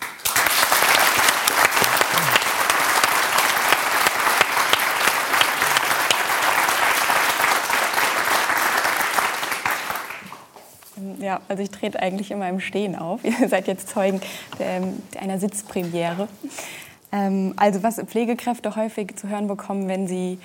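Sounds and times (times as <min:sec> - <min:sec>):
audience applause: 0:00.0 - 0:10.5
laughter: 0:01.8 - 0:02.7
speech: 0:11.3 - 0:20.4.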